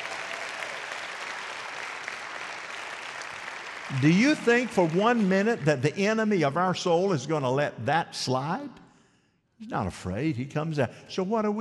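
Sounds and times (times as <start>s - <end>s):
audience clapping: 0.0s - 6.3s
speech: 3.9s - 8.8s, 9.6s - 11.5s.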